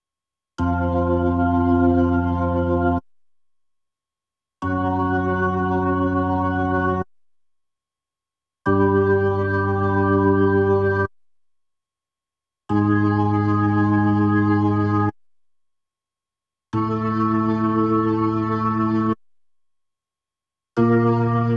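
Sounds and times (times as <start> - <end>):
Hammond B3 organ: 0.6 - 3.0, 4.7 - 7.0, 8.7 - 11.1, 12.8 - 15.1, 16.8 - 19.2, 20.8 - 21.5.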